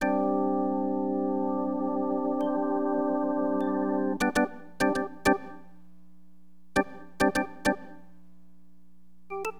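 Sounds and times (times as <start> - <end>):
organ: 0.0 - 5.7, 6.8 - 8.0, 9.3 - 9.5.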